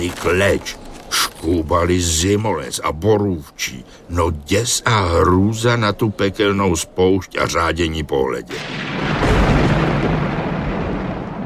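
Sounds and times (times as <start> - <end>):
speech: 0.1 - 0.8, 1.4 - 9.3
thunder rumbling from a clear sky: 8.5 - 11.4.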